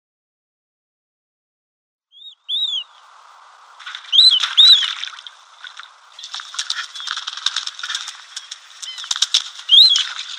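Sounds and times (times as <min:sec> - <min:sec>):
female marbled teal squeaky calls: 0:02.2 - 0:03.1, 0:03.8 - 0:10.3.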